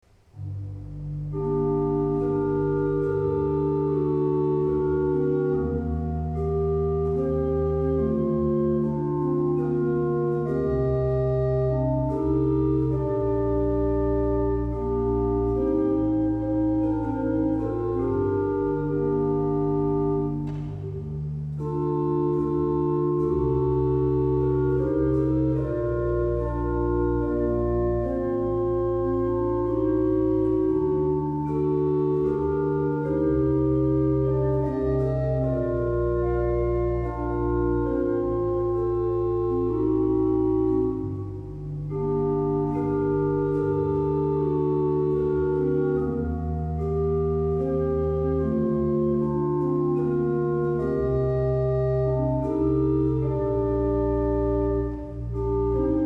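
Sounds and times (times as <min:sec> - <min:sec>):
organ: 0:00.2 - 0:56.0.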